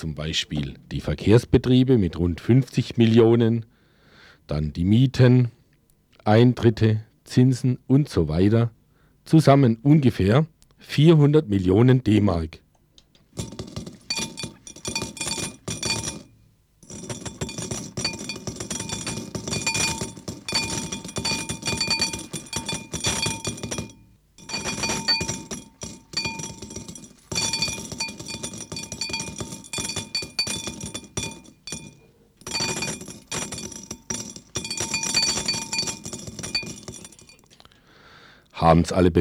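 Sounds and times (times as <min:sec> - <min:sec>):
speech: 0:00.0 - 0:03.7, 0:04.5 - 0:05.6, 0:06.2 - 0:12.6, 0:38.7 - 0:39.2
coins clinking in a collection box: 0:13.4 - 0:37.5.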